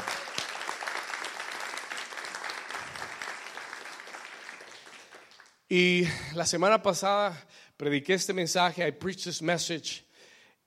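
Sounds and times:
audience applauding: 0.0 - 5.7
speech: 5.7 - 10.1.

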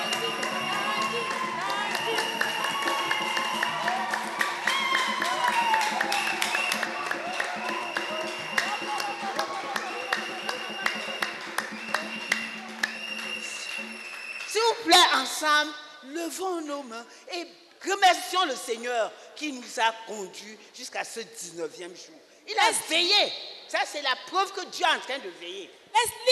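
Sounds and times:
congregation clapping in unison at a church prayer gathering: 0.0 - 15.2
speech: 16.4 - 26.3.

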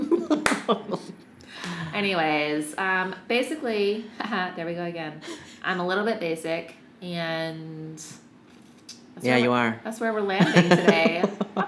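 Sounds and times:
laughter: 0.0 - 1.9, 10.4 - 11.6
slow clap: 0.3 - 0.9, 1.5 - 1.9
speech: 2.0 - 8.2, 9.2 - 11.6.

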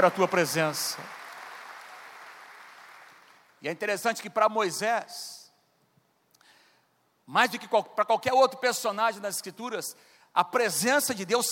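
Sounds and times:
speech: 0.0 - 1.2, 3.6 - 5.4, 7.3 - 11.4
audience applause: 0.0 - 3.5.

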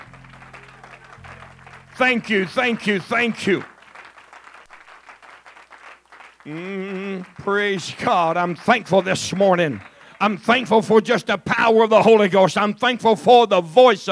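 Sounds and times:
low sustained organ-like tones: 0.0 - 3.8
audience applause: 0.0 - 11.0
man speaking loudly: 2.0 - 3.7, 6.5 - 14.1
speech: 2.0 - 3.7, 7.4 - 14.1.

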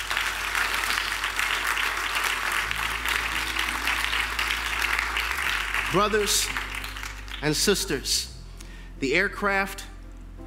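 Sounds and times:
people clapping: 0.0 - 8.0
speech: 5.9 - 6.6, 7.4 - 8.3, 9.0 - 9.9.

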